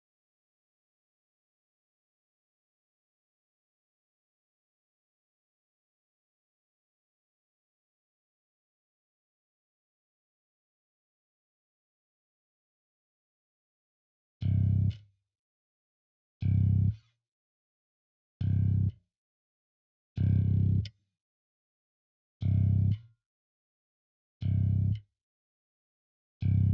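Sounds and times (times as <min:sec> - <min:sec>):
bass: 0:14.4 - 0:15.1, 0:16.4 - 0:17.1, 0:18.4 - 0:19.0, 0:20.2 - 0:21.0, 0:22.4 - 0:23.1, 0:24.4 - 0:25.0, 0:26.4 - 0:26.7.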